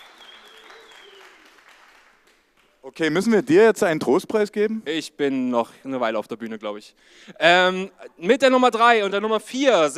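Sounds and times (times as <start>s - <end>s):
people cheering: 0.0s - 2.2s
crowd applause: 0.0s - 3.0s
speech: 2.8s - 9.9s.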